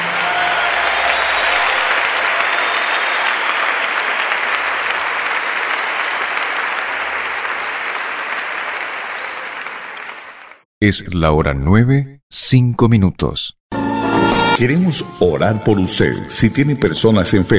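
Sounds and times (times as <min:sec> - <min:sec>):
audience clapping hands loudly: 0:00.0 - 0:10.7
speech: 0:10.8 - 0:13.6, 0:14.6 - 0:17.5.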